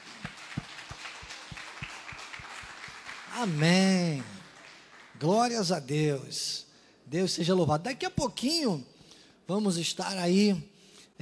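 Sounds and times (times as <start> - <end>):
crowd applause: 0.0 - 5.2
speech: 3.4 - 4.3, 5.2 - 8.9, 9.5 - 11.2.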